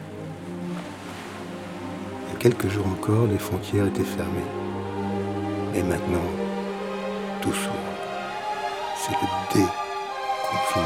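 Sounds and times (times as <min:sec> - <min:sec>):
calm sea waves at a seaside resort beach: 0:00.0 - 0:10.8
speech: 0:02.4 - 0:04.6, 0:05.7 - 0:06.4, 0:07.4 - 0:07.8, 0:09.1 - 0:09.8, 0:10.5 - 0:10.8.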